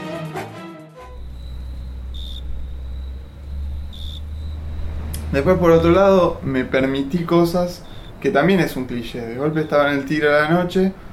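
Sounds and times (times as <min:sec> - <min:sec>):
heavy low rumble: 0:01.1 - 0:08.2
brief harmonic sound: 0:01.1 - 0:10.2
crickets chirping at night: 0:01.1 - 0:11.1
speech: 0:05.3 - 0:11.0.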